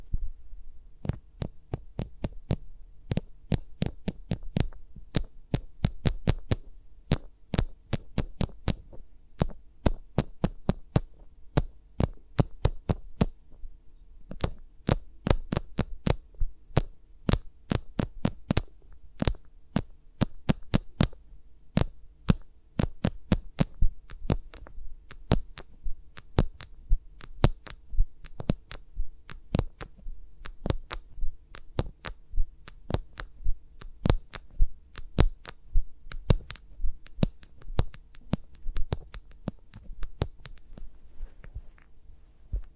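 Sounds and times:
faint steady low hum: 0.0 - 42.7
fingers rubbing and tapping against microphones: 1.0 - 13.4, 14.3 - 41.9.

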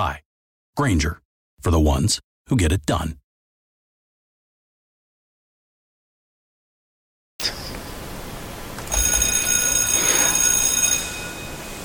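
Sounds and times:
speech: 0.0 - 0.2, 0.8 - 3.2
bell ringing: 8.9 - 11.8.

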